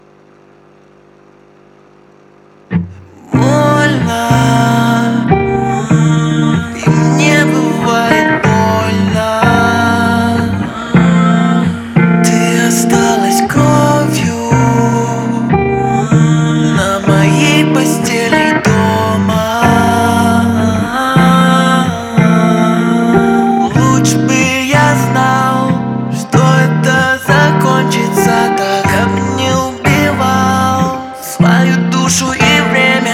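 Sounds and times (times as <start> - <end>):
acoustic music: 2.8 - 33.1.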